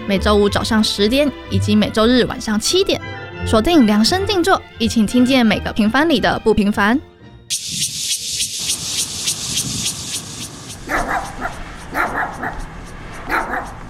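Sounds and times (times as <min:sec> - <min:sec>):
speech: 0:00.1 - 0:07.9
dog barking at night: 0:10.8 - 0:13.8.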